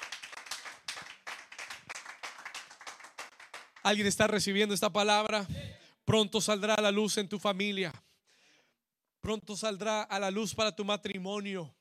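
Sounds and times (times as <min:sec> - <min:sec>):
audience clapping: 0:00.0 - 0:04.3
speech: 0:03.9 - 0:08.0, 0:09.3 - 0:11.8.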